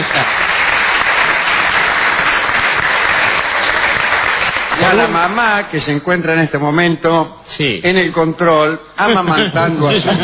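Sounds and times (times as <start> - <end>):
laughter: 0.0 - 0.7, 9.0 - 10.2
crowd applause: 0.0 - 5.7
speech: 4.9 - 10.2.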